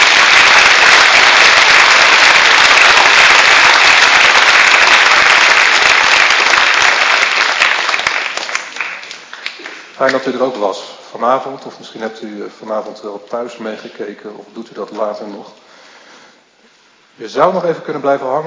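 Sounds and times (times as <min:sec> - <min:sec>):
audience applause: 0:00.0 - 0:10.2
speech: 0:10.0 - 0:15.6, 0:17.2 - 0:18.4.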